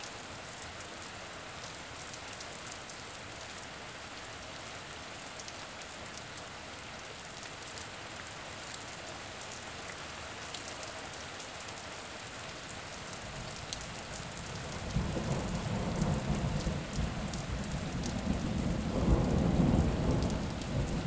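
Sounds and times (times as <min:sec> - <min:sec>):
rain: 0:00.0 - 0:21.0
storm: 0:14.7 - 0:21.0.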